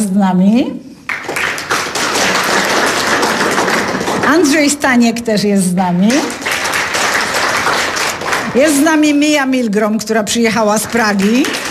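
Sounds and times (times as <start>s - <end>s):
speech: 0.0s - 0.9s, 4.3s - 6.4s, 8.5s - 11.6s
crowd applauding: 1.1s - 4.8s, 6.1s - 9.1s, 11.0s - 11.7s.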